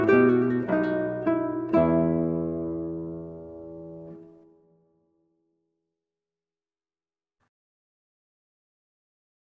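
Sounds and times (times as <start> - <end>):
baroque allemande played on guitar: 0.0 - 5.0.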